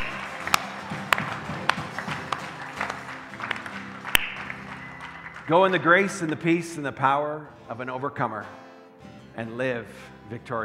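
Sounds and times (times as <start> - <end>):
audience clapping hands: 0.0 - 6.8
crowd murmuring: 0.0 - 6.9
speech: 5.5 - 8.6, 9.4 - 10.6.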